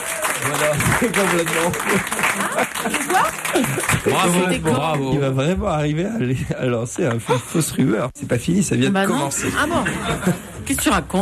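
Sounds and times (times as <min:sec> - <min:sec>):
studio audience applause for the Pékin Express winner: 0:00.0 - 0:05.1
speech: 0:00.4 - 0:11.2
laughter: 0:07.7 - 0:11.2.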